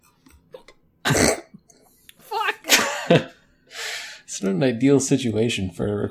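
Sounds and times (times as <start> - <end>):
hiccups: 1.0 - 1.6
speech: 3.1 - 3.4, 4.4 - 6.0.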